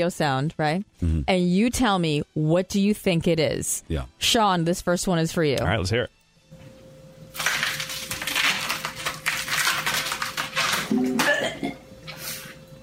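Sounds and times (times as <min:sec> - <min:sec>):
speech: 0:00.0 - 0:06.2
lettuce tearing for a head-ripping sound effect: 0:07.3 - 0:11.3.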